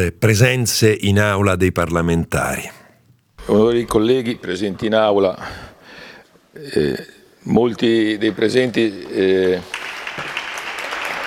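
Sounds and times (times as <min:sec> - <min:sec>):
speech: 0:00.0 - 0:02.8, 0:03.5 - 0:05.7, 0:06.6 - 0:10.3
applause in parliament chamber: 0:09.6 - 0:11.2.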